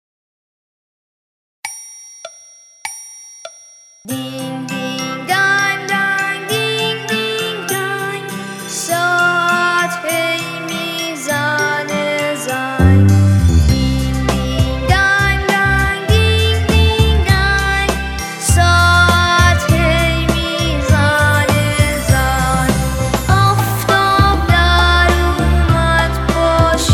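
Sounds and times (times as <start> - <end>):
person singing a nursery rhyme in C: 4.1 - 26.9.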